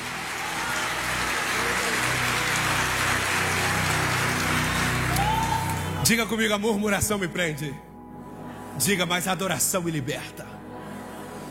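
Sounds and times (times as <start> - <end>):
church audience applause: 0.0 - 6.1
speech: 6.1 - 7.9, 8.8 - 10.6.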